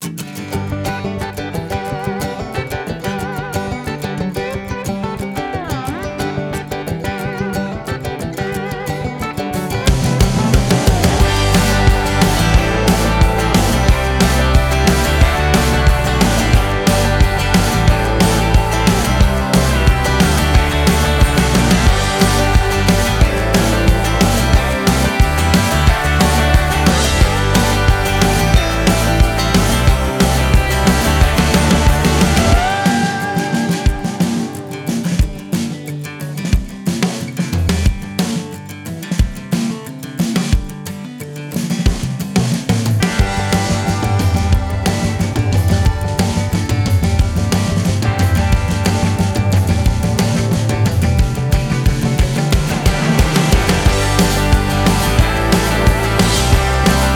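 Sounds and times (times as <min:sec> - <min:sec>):
country music: 0:00.0 - 0:57.1.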